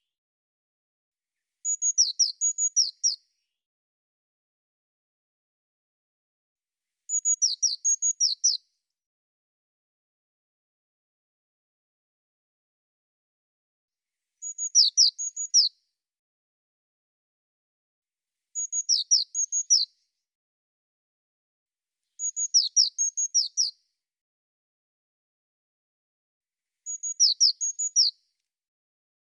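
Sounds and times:
Eurasian blue tit thin high whistled notes: 0:01.6 - 0:03.6, 0:07.1 - 0:08.6, 0:14.4 - 0:15.8, 0:18.6 - 0:19.9, 0:22.1 - 0:23.8, 0:26.8 - 0:28.2.

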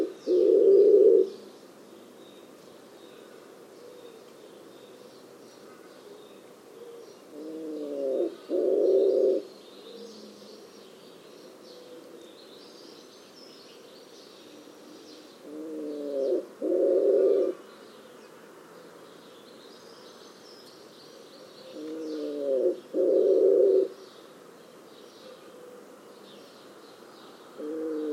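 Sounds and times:
bird cooing in a low register: 0:00.0 - 0:01.4, 0:03.8 - 0:10.7, 0:11.5 - 0:12.4, 0:14.4 - 0:18.2, 0:21.2 - 0:24.0, 0:25.2 - 0:26.1, 0:27.6 - 0:28.1.

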